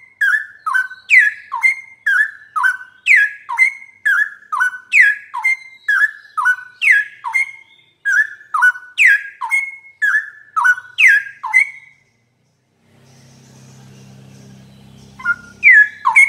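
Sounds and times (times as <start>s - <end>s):
bird singing whistled notes: 0.0s - 16.2s.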